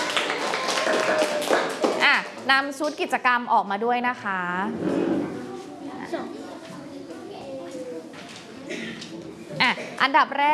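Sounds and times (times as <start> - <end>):
students clapping: 0.0 - 2.3
speech: 2.5 - 5.4, 6.1 - 6.4, 9.6 - 10.5.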